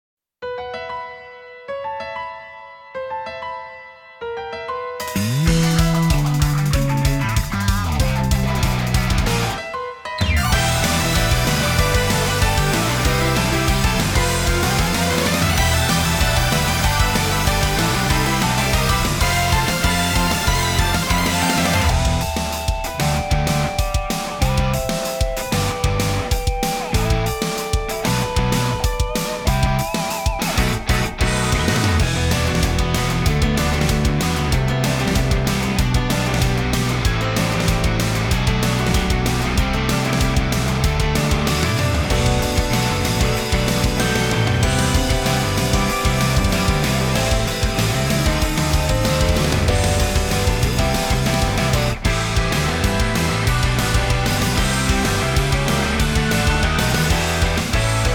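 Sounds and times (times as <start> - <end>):
instrumental music: 0.5 - 58.1.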